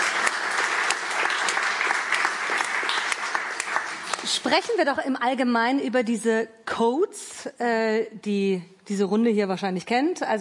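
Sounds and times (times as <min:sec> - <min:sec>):
audience applause: 0:00.0 - 0:04.6
speech: 0:04.3 - 0:10.3.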